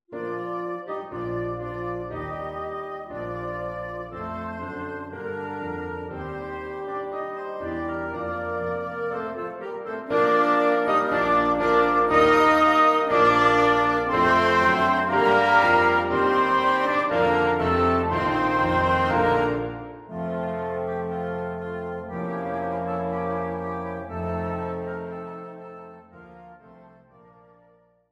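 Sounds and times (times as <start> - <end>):
wind quintet and piano: 0.1 - 28.0.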